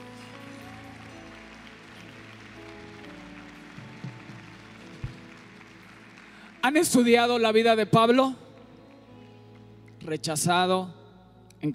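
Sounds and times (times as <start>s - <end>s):
audience applause: 0.0s - 7.2s
speech: 6.6s - 8.4s, 10.1s - 11.0s.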